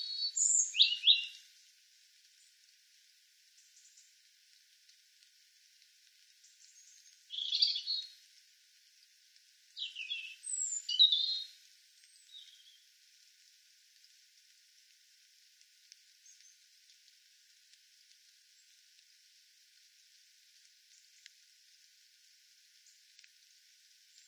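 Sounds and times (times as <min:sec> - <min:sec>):
European robin singing: 0:00.0 - 0:01.4, 0:06.7 - 0:08.2, 0:09.8 - 0:11.5, 0:12.1 - 0:12.8.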